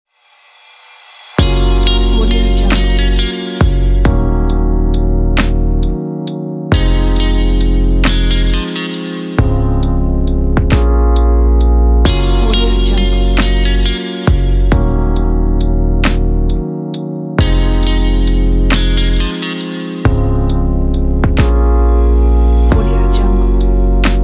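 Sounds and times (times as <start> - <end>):
modern warm chill pop music: 1.4 - 24.2.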